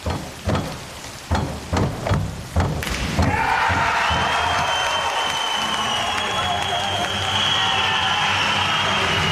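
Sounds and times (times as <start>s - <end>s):
rhythmic thuds: 0.0s - 6.3s
crowd cheering and applauding at a swimming and diving event: 3.0s - 9.3s.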